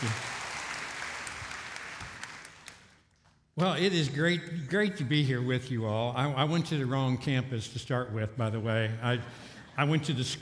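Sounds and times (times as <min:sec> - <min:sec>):
audience applause welcoming a speaker to the stage: 0:00.0 - 0:03.0
speech: 0:03.6 - 0:10.3.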